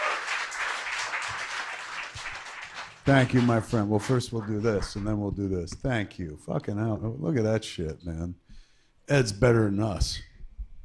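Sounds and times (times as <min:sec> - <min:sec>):
audience applause: 0:00.0 - 0:05.0
speech: 0:03.1 - 0:08.4, 0:09.1 - 0:10.3.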